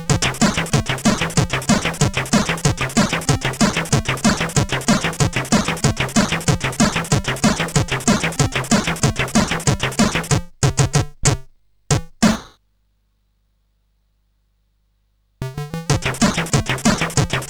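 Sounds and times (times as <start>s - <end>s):
tune on CSG8580R5 chip: 0.0s - 11.0s, 15.4s - 17.4s.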